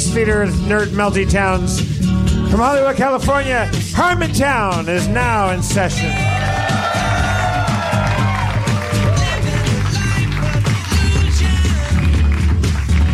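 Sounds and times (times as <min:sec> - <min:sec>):
speech: 0:00.2 - 0:06.9
audience applause and cheering: 0:06.1 - 0:13.1.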